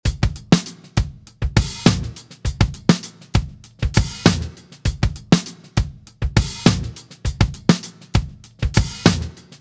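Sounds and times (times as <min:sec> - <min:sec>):
vintage groove: 0:00.1 - 0:09.5.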